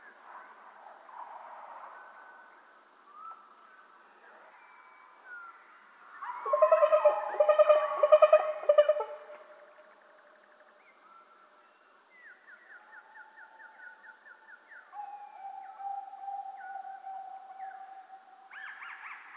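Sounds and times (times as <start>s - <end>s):
black woodpecker calling: 6.2s - 9.6s.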